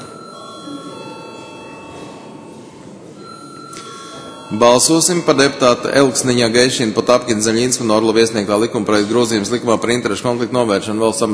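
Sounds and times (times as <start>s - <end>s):
parliamentary voting bell ringing: 0.0s - 7.8s
speech: 4.5s - 11.3s.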